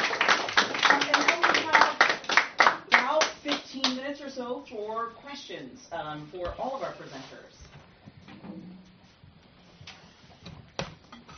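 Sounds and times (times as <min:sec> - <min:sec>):
audience applause: 0:00.0 - 0:03.0
speech: 0:05.0 - 0:07.8.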